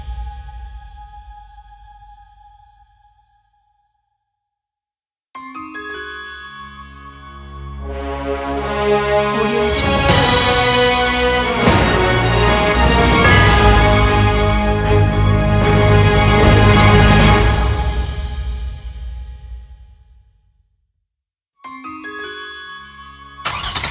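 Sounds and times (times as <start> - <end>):
orchestral logo music: 7.8 - 19.6.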